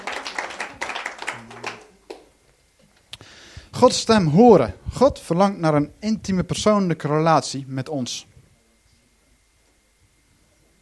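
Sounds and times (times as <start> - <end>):
crowd applauding the teenagers: 0.0 - 2.3
speech: 3.8 - 8.3.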